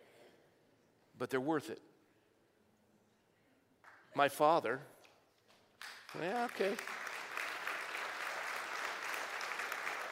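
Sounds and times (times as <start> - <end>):
speech: 1.2 - 1.9, 4.2 - 4.9, 6.1 - 7.0
audience clapping: 5.5 - 10.0.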